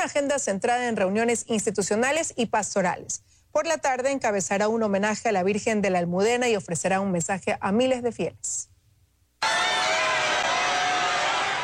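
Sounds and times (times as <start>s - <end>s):
speech: 0.0s - 8.7s
crowd cheering for Pope Leo XIV in Madrid: 9.4s - 11.6s.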